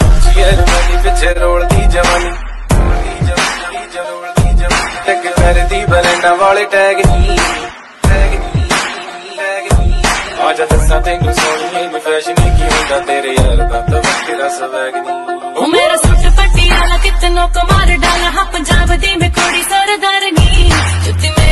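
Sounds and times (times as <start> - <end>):
Bollywood Punjabi ringtone music mix: 0.0 - 21.5.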